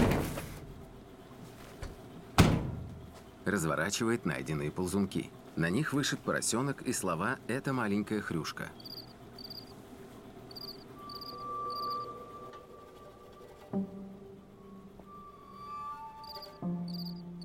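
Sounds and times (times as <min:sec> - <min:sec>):
low hum: 0:00.0 - 0:17.4
speech: 0:03.4 - 0:09.0
cricket chirping on a baking tray: 0:08.7 - 0:12.5, 0:15.5 - 0:17.4.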